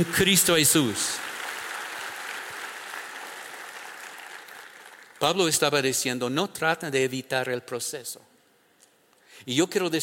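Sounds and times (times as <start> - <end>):
speech: 0.0 - 1.3, 5.2 - 8.3, 9.4 - 10.0
crowd clapping: 0.0 - 5.5.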